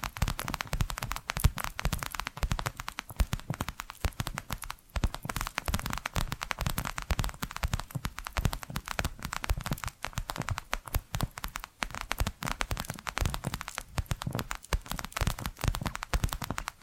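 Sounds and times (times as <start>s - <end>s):
rapid tapping: 0.0s - 16.8s.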